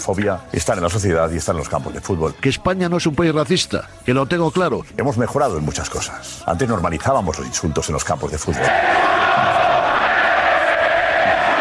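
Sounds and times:
speech: 0.0s - 9.5s
stadium crowd chanting: 8.6s - 11.6s.

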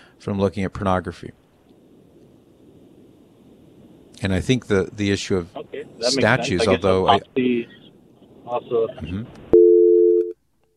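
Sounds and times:
speech: 0.2s - 1.4s, 4.2s - 7.8s, 8.5s - 9.4s
telephone busy signal: 9.5s - 10.4s.

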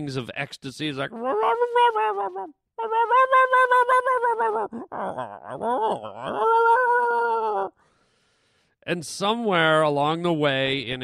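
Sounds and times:
speech: 0.0s - 7.0s, 8.8s - 11.0s
dog moaning and whining: 1.1s - 7.7s.

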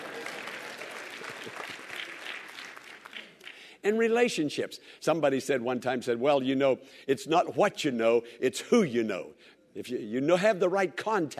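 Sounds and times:
audience clapping: 0.0s - 3.7s
speech: 3.8s - 11.3s.

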